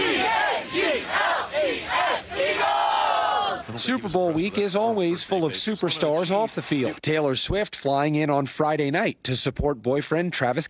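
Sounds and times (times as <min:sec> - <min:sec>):
sports fans singing a fight song on a plane: 0:00.0 - 0:03.7
laughter: 0:03.7 - 0:07.0
speech: 0:03.8 - 0:10.6.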